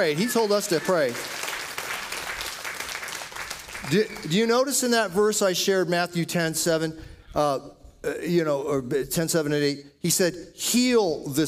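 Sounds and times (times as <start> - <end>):
speech: 0.0 - 1.4, 3.8 - 11.4
hand clapping: 0.1 - 4.4.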